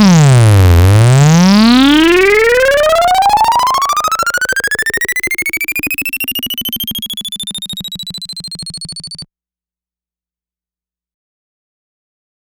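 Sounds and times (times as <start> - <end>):
Moog Mavis synthesizer dry signal: 0.0 - 9.2.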